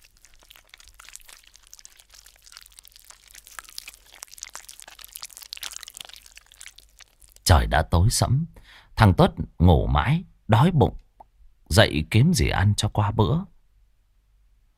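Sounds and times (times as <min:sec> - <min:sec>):
crunchy chewing of grave dirt: 0:00.0 - 0:07.5
speech: 0:07.5 - 0:11.0, 0:11.7 - 0:13.5.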